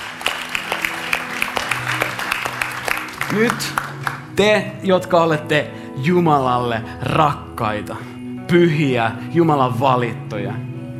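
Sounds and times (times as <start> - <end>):
crowd applause: 0.0 - 4.3
speech: 3.3 - 10.7.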